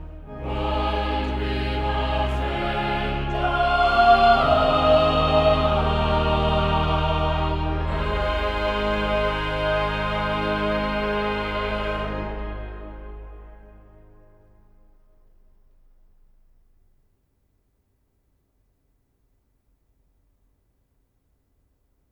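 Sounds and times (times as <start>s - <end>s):
cathedral choir singing: 0.0s - 14.2s.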